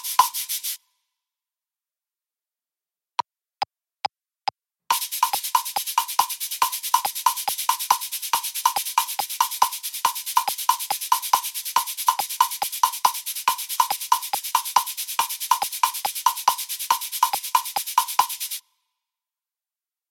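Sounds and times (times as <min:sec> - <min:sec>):
cabasa foot pedal shaker: 0:00.0 - 0:00.8, 0:04.9 - 0:18.6.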